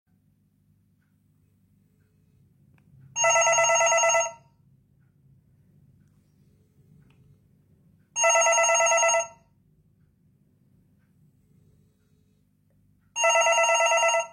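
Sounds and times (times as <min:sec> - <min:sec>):
SIP Sirio telephone: 0:03.2 - 0:04.5, 0:08.2 - 0:09.5, 0:13.2 - 0:14.3.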